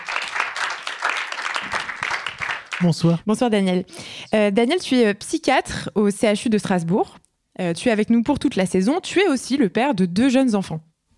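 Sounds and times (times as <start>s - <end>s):
audience applause: 0.0s - 3.2s
speech: 2.8s - 10.9s.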